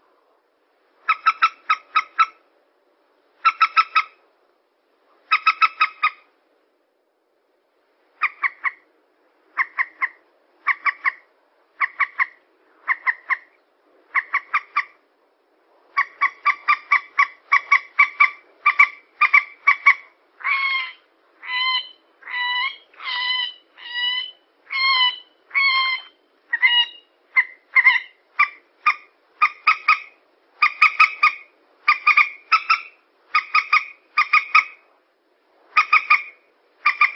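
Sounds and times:
yellow-vented bulbul calls: 0:01.0 - 0:02.4, 0:03.4 - 0:04.2, 0:05.3 - 0:06.3, 0:08.2 - 0:08.8, 0:09.6 - 0:15.0, 0:16.0 - 0:34.8, 0:35.8 - 0:37.1.

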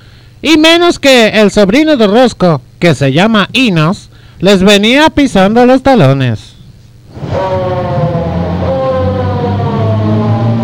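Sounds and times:
speech: 0:00.4 - 0:06.5
low vehicle engine rumbling: 0:07.1 - 0:10.6
ambulance siren wailing: 0:07.2 - 0:10.6.

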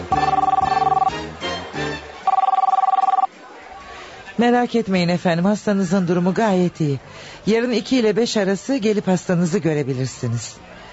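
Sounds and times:
electronic hospital telephone ringing: 0:00.1 - 0:01.2, 0:02.3 - 0:03.3
melodic music: 0:00.1 - 0:03.3
speech: 0:04.4 - 0:10.7.

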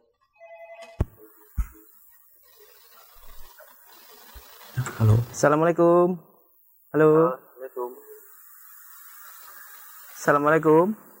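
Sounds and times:
phone ringtone with a bright melodic tone pattern: 0:00.4 - 0:01.0
speech: 0:05.0 - 0:06.3, 0:06.9 - 0:07.4, 0:10.3 - 0:11.1.

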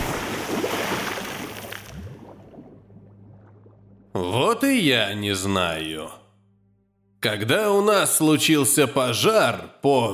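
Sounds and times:
dark bay water churning and sloshing: 0:00.0 - 0:04.2
safe holding a body sinking with low gurgling surges: 0:00.0 - 0:04.2
speech: 0:04.2 - 0:06.2, 0:07.2 - 0:10.1.

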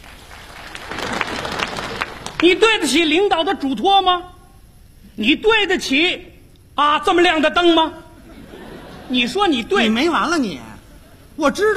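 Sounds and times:
audience applause at a performance: 0:00.0 - 0:02.6
speech: 0:02.4 - 0:04.4, 0:05.2 - 0:08.0, 0:09.1 - 0:10.7, 0:11.4 - 0:11.7
laughter: 0:08.2 - 0:11.4.

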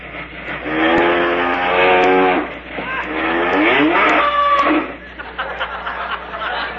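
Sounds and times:
voice imitating a passing milk train: 0:01.8 - 0:05.0
laughter: 0:04.9 - 0:06.7.

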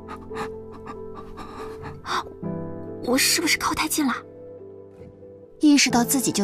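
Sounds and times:
heavy labored panting: 0:00.0 - 0:02.4
speech: 0:00.1 - 0:00.6, 0:03.0 - 0:04.3, 0:05.6 - 0:06.4.

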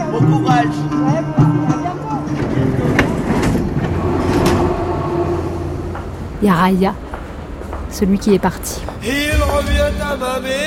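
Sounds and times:
indistinct voices murmuring: 0:00.0 - 0:05.9
metro train rumble in Châtelet metro station corridors in Paris: 0:00.0 - 0:10.6
speech: 0:00.1 - 0:01.8, 0:06.4 - 0:07.1, 0:07.9 - 0:10.6.

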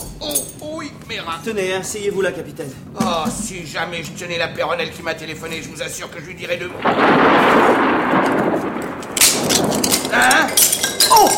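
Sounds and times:
porcelain vase shattering: 0:00.0 - 0:00.6, 0:08.9 - 0:11.3
speech: 0:00.3 - 0:08.3, 0:10.1 - 0:11.3.

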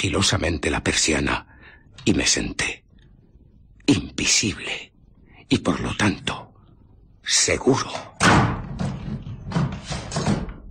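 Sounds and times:
speech: 0:00.0 - 0:02.8, 0:03.9 - 0:04.9, 0:05.5 - 0:06.5, 0:07.2 - 0:08.5
door panel being broken in and bolts drawn back: 0:08.1 - 0:10.6.

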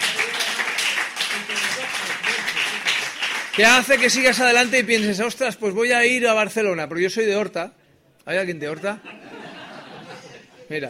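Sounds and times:
audience clapping at a live music show at Niemands Land: 0:00.0 - 0:05.2
speech: 0:03.6 - 0:09.4, 0:10.7 - 0:10.8
laughter: 0:08.9 - 0:10.8.

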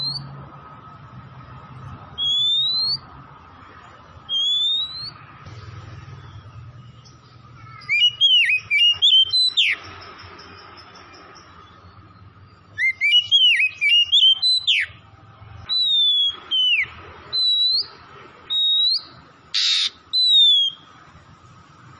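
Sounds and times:
Oriental magpie-robin song: 0:00.0 - 0:00.3, 0:02.2 - 0:03.1, 0:04.3 - 0:05.2, 0:06.2 - 0:10.1, 0:12.7 - 0:15.0, 0:15.6 - 0:20.9.

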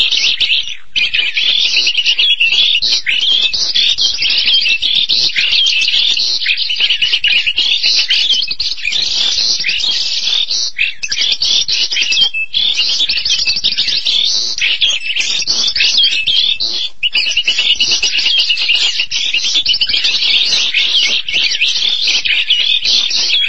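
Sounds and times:
starling singing buzzy chatter and whistles: 0:00.0 - 0:23.4.

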